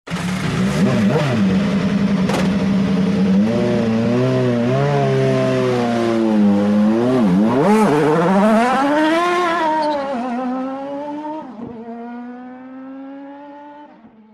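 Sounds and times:
MotoGP racing motorcycles: 0.1 - 14.3.

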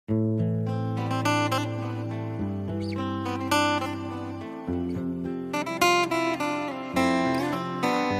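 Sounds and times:
soothing guitar: 0.1 - 8.1.

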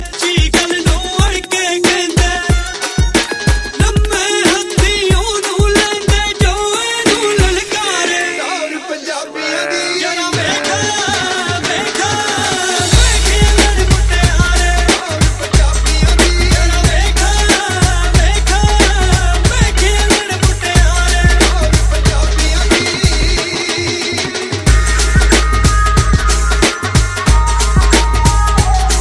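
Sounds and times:
Punjabi music: 0.0 - 29.0.

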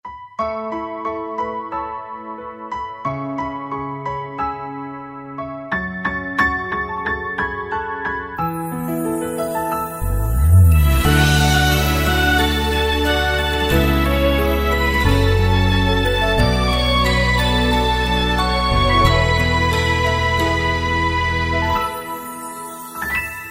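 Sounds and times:
piano intro: 0.1 - 23.4.

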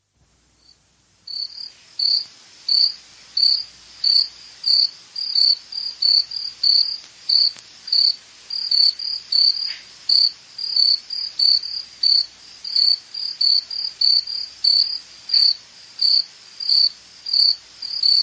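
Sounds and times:
crickets chirping: 0.6 - 18.2.

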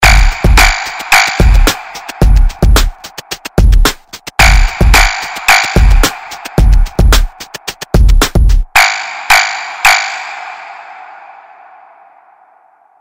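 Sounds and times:
frog bass sound: 0.0 - 8.8.

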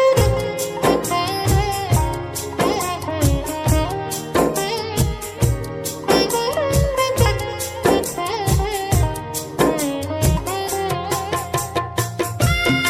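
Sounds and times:
rock music: 0.2 - 12.8.

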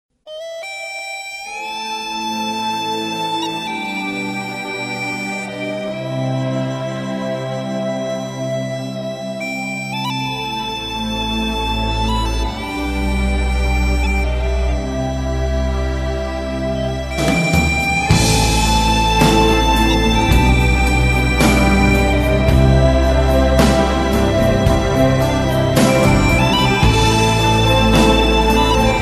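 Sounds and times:
classical music: 0.6 - 29.0.

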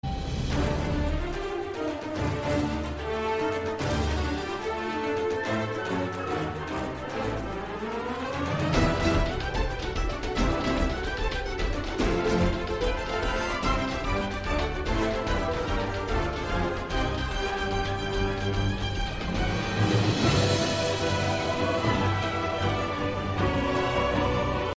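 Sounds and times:
epic music mix: 0.0 - 24.7.

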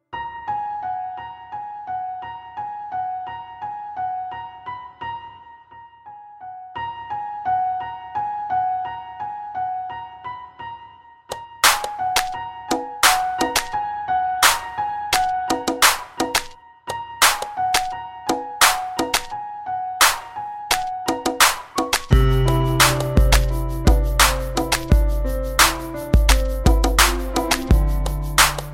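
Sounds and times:
piano: 0.0 - 28.7.

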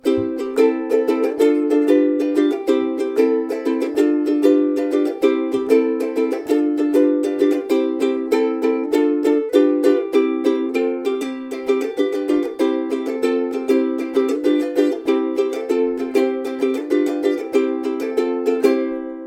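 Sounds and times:
ukulele ringtone: 0.0 - 19.2.

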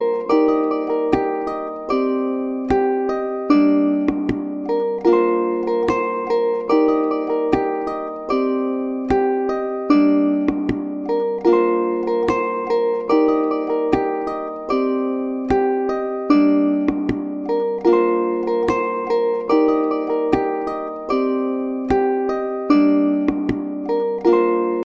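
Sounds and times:
harp: 0.0 - 24.8.

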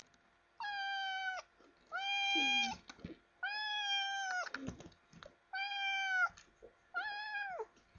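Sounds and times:
cat meowing: 0.6 - 2.8, 3.4 - 4.6, 5.5 - 7.7.

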